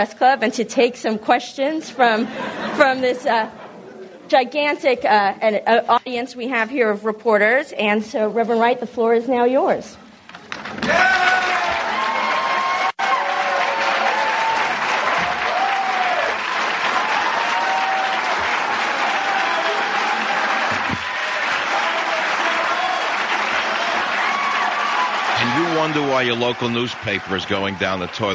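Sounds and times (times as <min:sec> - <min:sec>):
speech: 0:00.0 - 0:03.6, 0:04.3 - 0:10.0, 0:26.2 - 0:28.3
audience applause: 0:10.5 - 0:28.3.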